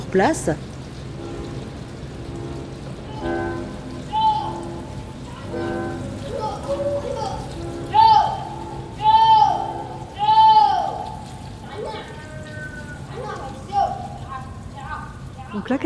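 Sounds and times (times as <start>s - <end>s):
steady hiss: 0.0s - 15.8s
speech: 0.1s - 0.7s
villager calling buffaloes in the marshes: 3.0s - 13.0s.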